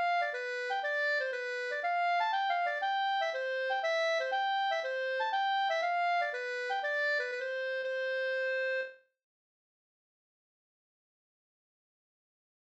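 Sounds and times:
bondpolska dance tune: 0.0 - 9.0.

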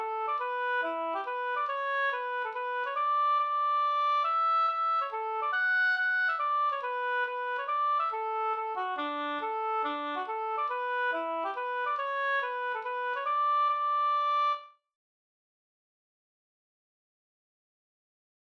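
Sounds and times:
polska folk dance tune: 0.0 - 14.6.

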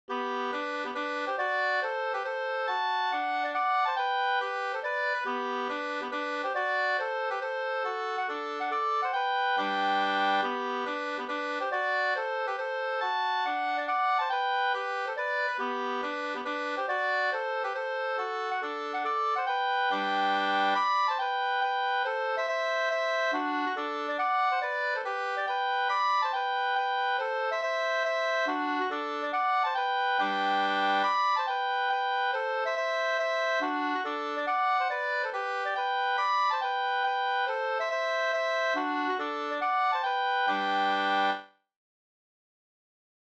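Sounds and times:
hambo polska folk dance tune: 0.1 - 41.5.

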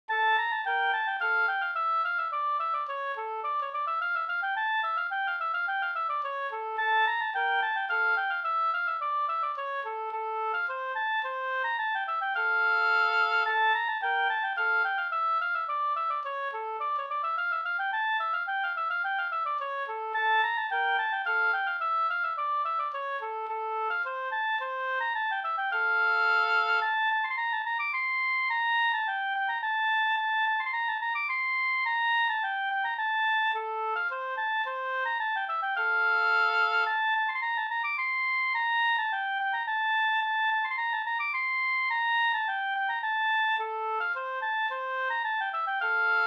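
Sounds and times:
slängpolska folk dance tune: 0.1 - 46.2.

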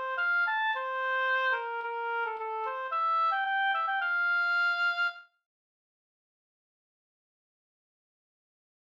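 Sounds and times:
slängpolska folk dance tune: 0.0 - 5.2.

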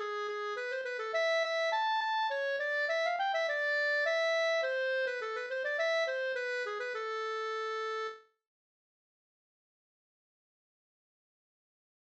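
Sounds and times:
polska in A minor: 0.0 - 8.2.

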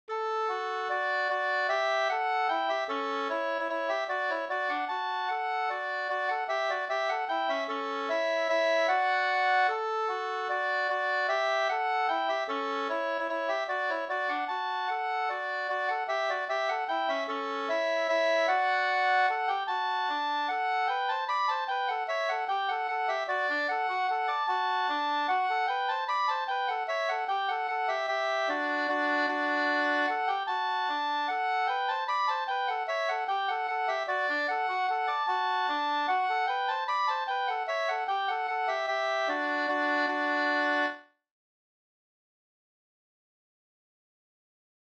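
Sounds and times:
waltz music: 0.2 - 41.1.

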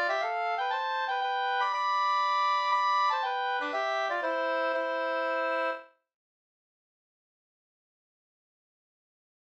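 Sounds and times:
mazurka: 0.0 - 5.8.

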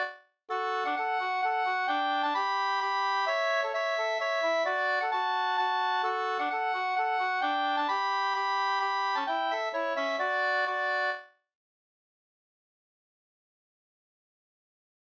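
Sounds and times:
hambo polska dance tune: 0.0 - 11.2.

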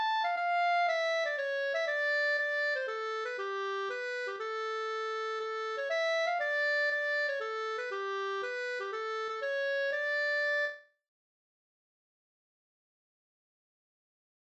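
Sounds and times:
polska folk tune: 0.0 - 11.0.

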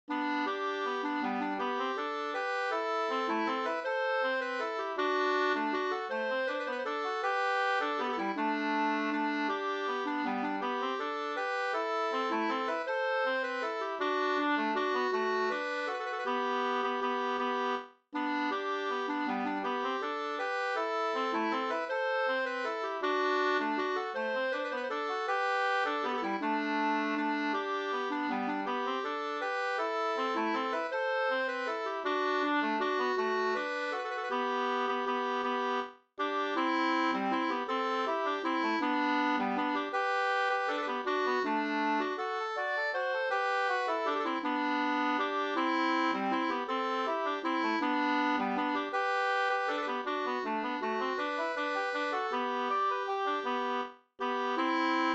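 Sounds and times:
waltz in G major: 0.1 - 55.1.

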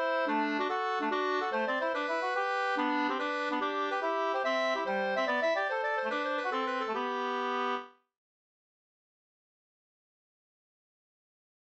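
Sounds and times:
mazurka music: 0.0 - 7.9.

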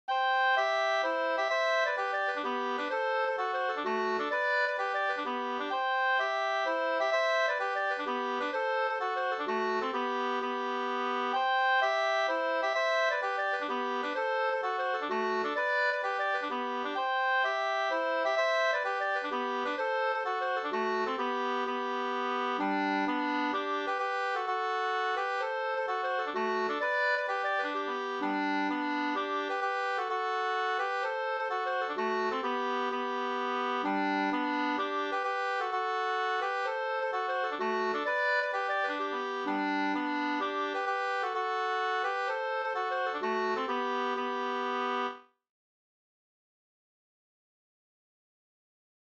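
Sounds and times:
polska folk tune: 0.1 - 45.3.

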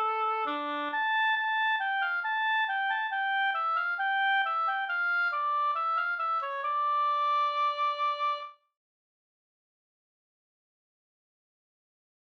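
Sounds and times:
folk walking tune: 0.0 - 8.5.

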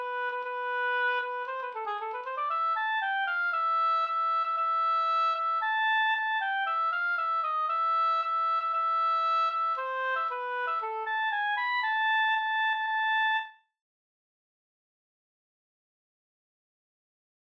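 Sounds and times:
folk walking tune: 0.0 - 13.4.

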